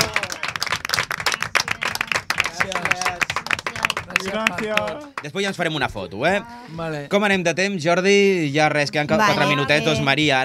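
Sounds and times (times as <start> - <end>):
applause: 0.0 - 5.7
speech: 4.2 - 10.4.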